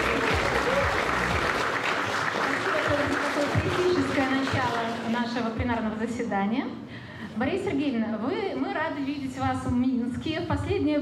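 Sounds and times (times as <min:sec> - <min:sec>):
audience applause: 0:00.0 - 0:05.1
speech: 0:05.7 - 0:06.8, 0:07.4 - 0:10.9.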